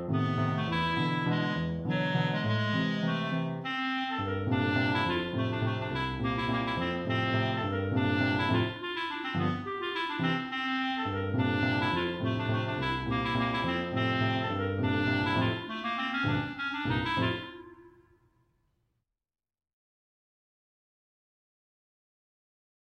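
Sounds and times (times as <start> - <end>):
piano: 0.0 - 18.0
clarinet playing a waltz: 0.0 - 18.3.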